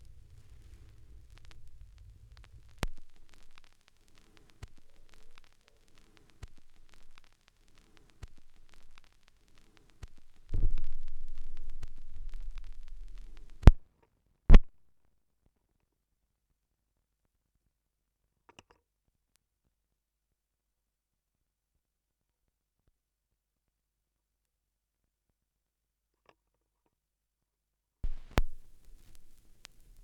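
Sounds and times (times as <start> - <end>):
vinyl record noise: 0.0 - 13.8, 14.5 - 14.8, 28.0 - 30.0.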